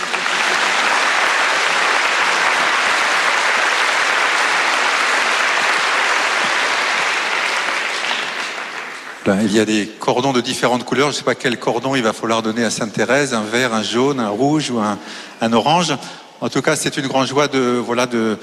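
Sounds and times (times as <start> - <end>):
audience applause: 0.0 - 9.4
speech: 9.3 - 18.4.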